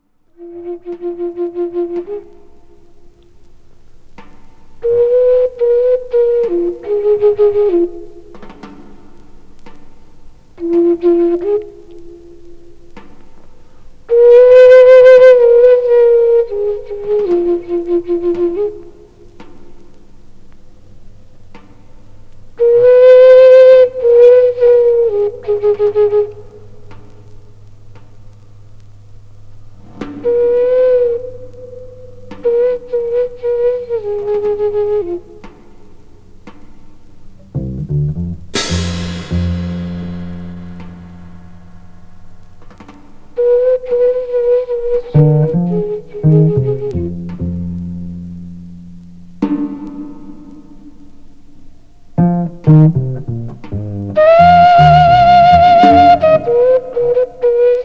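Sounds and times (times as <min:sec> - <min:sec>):
bamboo flute blues: 0:00.3 - 0:20.5, 0:21.5 - 0:28.9, 0:29.6 - 0:57.8.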